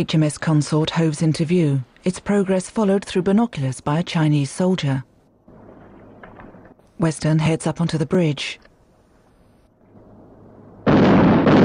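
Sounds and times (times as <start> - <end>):
speech: 0.0 - 5.1, 7.0 - 8.7
Chinese artillery guns firing on HMS Consort: 10.8 - 11.6
shells bursting near a marshy area: 10.8 - 11.6.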